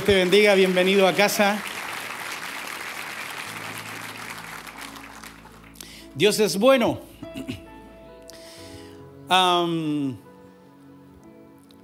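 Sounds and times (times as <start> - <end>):
speech: 0.0 - 1.7, 6.2 - 7.5, 9.3 - 10.2
audience applause: 0.0 - 5.8.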